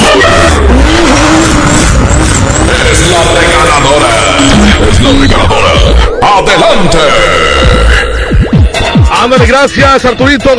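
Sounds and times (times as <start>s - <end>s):
racing car engine roaring: 0.0s - 8.2s
speech: 9.5s - 10.5s.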